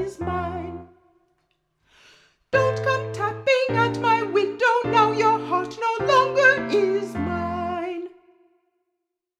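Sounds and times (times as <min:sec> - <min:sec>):
soprano singing: 0:00.0 - 0:01.1, 0:02.6 - 0:08.4.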